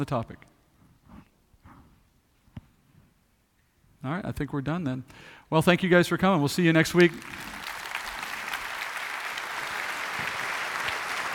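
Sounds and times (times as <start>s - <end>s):
speech: 0.0s - 0.5s, 4.0s - 7.6s
audience applause: 7.0s - 11.3s.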